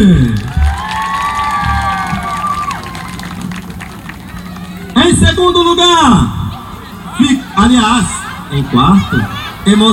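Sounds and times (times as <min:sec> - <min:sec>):
audience applause: 0:00.2 - 0:05.2
laughter: 0:06.5 - 0:09.9
speech: 0:07.8 - 0:09.9.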